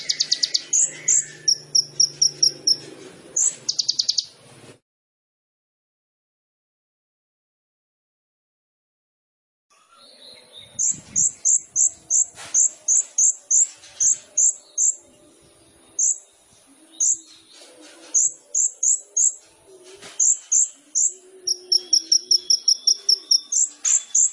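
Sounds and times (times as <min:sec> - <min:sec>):
sunbird song: 0:00.0 - 0:04.4, 0:09.7 - 0:24.3.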